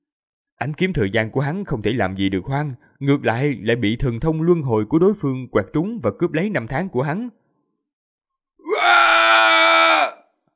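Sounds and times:
speech: 0.6 - 7.4
man's agonised scream sound effect in a fantasy novel audiobook: 8.6 - 10.3.

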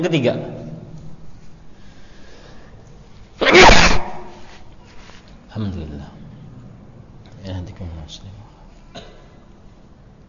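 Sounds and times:
speech: 0.0 - 0.6, 7.8 - 8.6
loud sneeze: 3.4 - 4.6.

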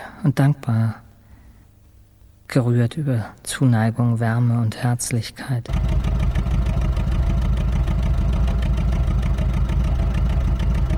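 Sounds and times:
speech: 0.2 - 1.0, 2.5 - 5.9
taxi engine running during a ride: 5.7 - 10.9.

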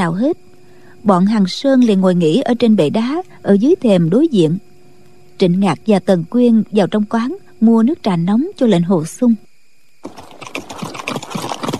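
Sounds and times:
speech: 0.0 - 4.6, 5.4 - 10.5
galloping horse hooves: 10.0 - 11.7.

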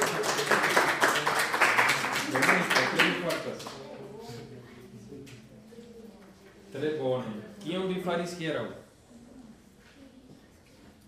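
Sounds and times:
applause: 0.0 - 3.9
speech: 6.8 - 8.8.

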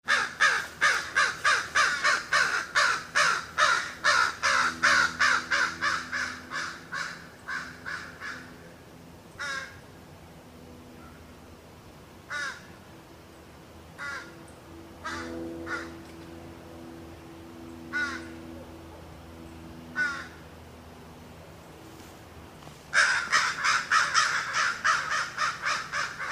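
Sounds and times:
crow cawing: 0.1 - 8.5, 9.4 - 9.8, 12.3 - 12.7, 14.0 - 14.3, 15.0 - 16.0, 17.9 - 18.4, 19.9 - 20.4, 22.9 - 26.2
low steady hum: 0.1 - 26.2.

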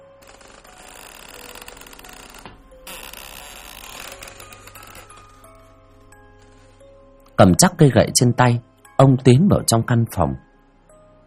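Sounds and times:
old long-unused storeroom door creaking open: 0.0 - 5.7
speech: 7.4 - 10.5.

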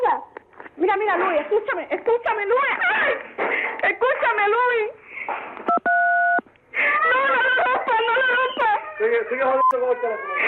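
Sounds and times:
speech: 0.8 - 5.8, 9.0 - 10.4
person crying over the phone: 6.8 - 10.4.

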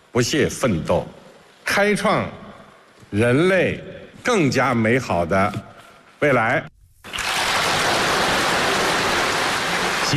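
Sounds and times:
speech: 0.2 - 1.2, 1.8 - 2.4, 3.1 - 6.7
warm applause from a large audience: 7.1 - 10.1.

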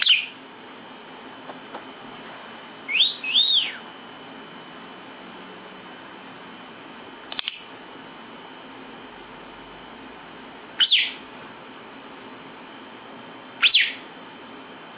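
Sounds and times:
lovebird giving shrill sharp chirps: 0.0 - 0.4, 2.9 - 3.8, 10.8 - 11.2, 13.6 - 14.0.

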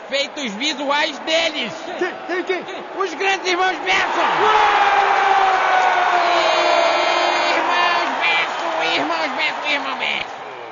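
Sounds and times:
speech: 0.1 - 5.5, 9.0 - 10.4
huge crowd clapping and cheering: 3.0 - 10.7.

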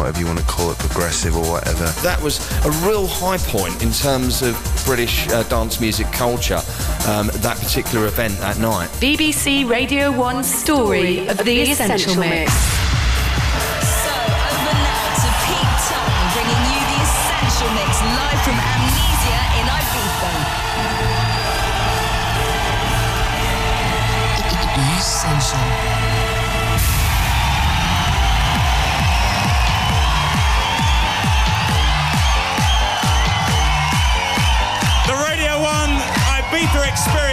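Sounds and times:
speech: 0.1 - 12.8
nightclub crowd cheering and whooping at Amnesia: 11.5 - 37.3.

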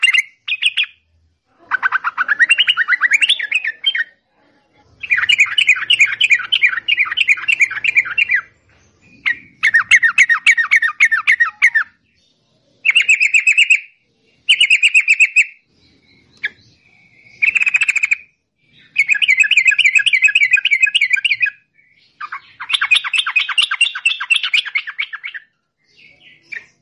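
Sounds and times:
yellow-vented bulbul trilled song: 0.0 - 4.2, 4.9 - 26.7.

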